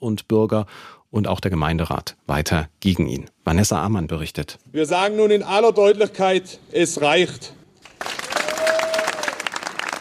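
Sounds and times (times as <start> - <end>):
speech: 0.0 - 7.6
crowd clapping and cheering at a protest rally outside Wutach town hall: 7.8 - 9.9.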